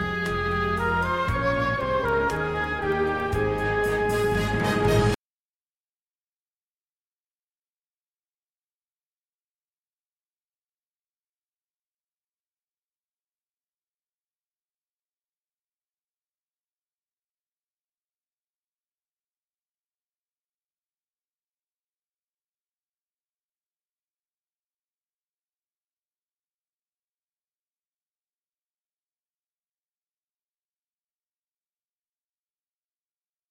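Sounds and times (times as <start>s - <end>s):
string instruments: 0.0s - 5.2s.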